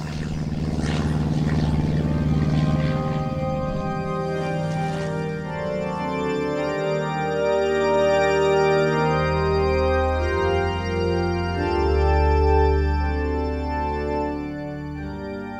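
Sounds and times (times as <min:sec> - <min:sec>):
propeller airplane flying overhead: 0:00.0 - 0:15.5.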